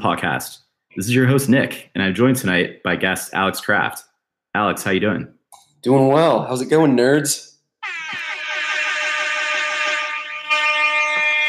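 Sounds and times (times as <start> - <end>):
speech: 0.0 - 7.5
air horn sound effect: 7.8 - 11.4.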